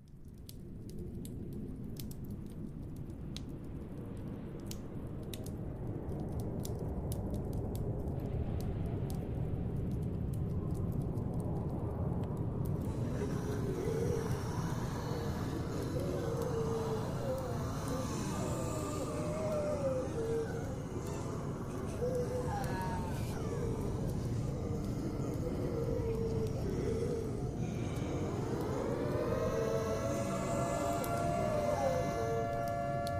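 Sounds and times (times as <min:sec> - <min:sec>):
low rumble of zombie apocalypse ambience: 0:00.9 - 0:33.1
zombie groaning and moaning voices: 0:12.6 - 0:33.1
rising whining tones: 0:27.6 - 0:33.1.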